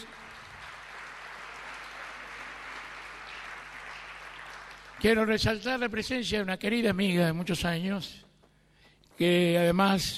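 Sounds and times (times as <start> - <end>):
audience applause: 0.0 - 5.4
speech: 5.0 - 8.2, 9.2 - 10.1.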